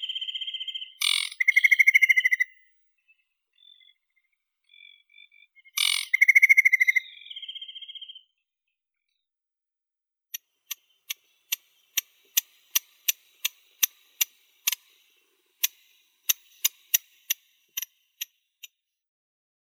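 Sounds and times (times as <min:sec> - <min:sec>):
aquatic warbler Acrocephalus paludicola: 0:00.0 - 0:02.5, 0:03.5 - 0:08.2, 0:10.7 - 0:18.4.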